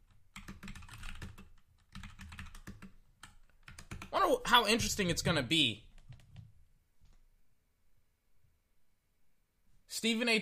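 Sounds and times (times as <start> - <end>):
typing on a computer keyboard: 0.0 - 4.1, 5.9 - 6.5
speech: 4.1 - 5.9, 10.0 - 10.3.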